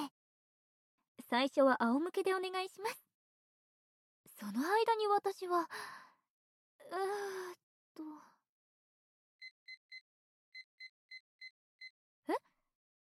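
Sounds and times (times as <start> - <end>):
speech: 1.3 - 3.0, 4.3 - 5.9, 6.8 - 8.3
electronic timer beeping: 9.4 - 10.0, 10.6 - 12.0.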